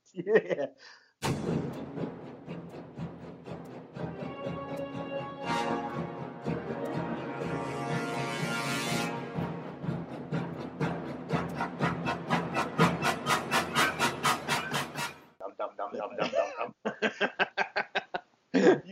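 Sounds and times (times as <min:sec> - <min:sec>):
speech: 0:00.2 - 0:02.0
film theme music: 0:01.2 - 0:15.3
laughter: 0:16.0 - 0:18.8.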